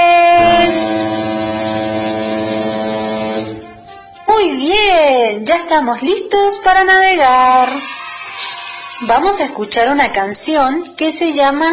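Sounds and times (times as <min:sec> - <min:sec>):
ship's horn blast: 0:00.0 - 0:03.9
speech: 0:05.3 - 0:08.0, 0:09.0 - 0:11.7.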